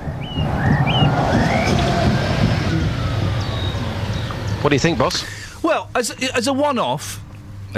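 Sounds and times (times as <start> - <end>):
bird chirps: 0.0 - 5.0
bus engine on a busway behind gardens rumbling: 0.0 - 7.7
speech: 4.6 - 7.7.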